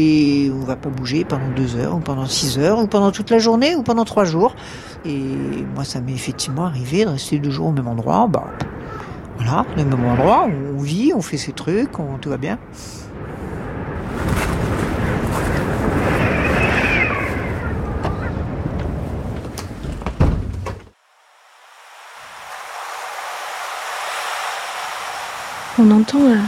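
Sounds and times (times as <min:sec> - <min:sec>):
speech: 0:00.0 - 0:13.4, 0:25.8 - 0:26.4
wind behind a dune: 0:00.0 - 0:26.4
ocean waves behind a dune: 0:04.3 - 0:06.9, 0:08.6 - 0:12.0, 0:12.6 - 0:19.4, 0:21.0 - 0:26.4.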